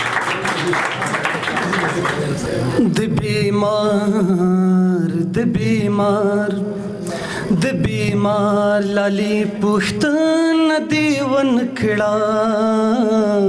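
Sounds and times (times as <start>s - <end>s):
audience clapping for a poet at a Pashto poetry gathering: 0.0s - 2.7s
speech: 0.7s - 0.9s, 2.0s - 13.4s.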